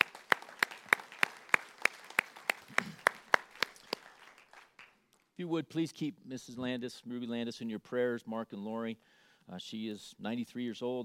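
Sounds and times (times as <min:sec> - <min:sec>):
audience applause: 0:00.0 - 0:05.0
speech: 0:05.4 - 0:11.0.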